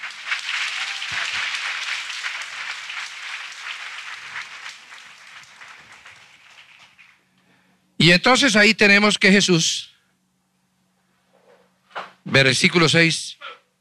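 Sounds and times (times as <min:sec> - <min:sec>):
audience applause: 0:00.0 - 0:07.3
speech: 0:08.0 - 0:09.9, 0:12.4 - 0:13.5.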